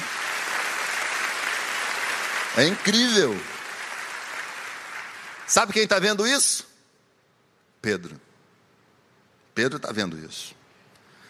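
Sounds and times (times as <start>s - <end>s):
audience applause during a sermon: 0.0s - 6.2s
speech: 2.6s - 3.5s, 5.5s - 6.7s, 7.8s - 8.2s, 9.6s - 10.6s.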